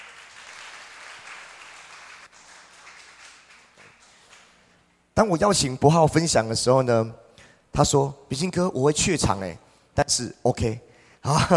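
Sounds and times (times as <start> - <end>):
crowd applauding: 0.0 - 4.6
speech: 5.2 - 7.2, 7.8 - 11.5.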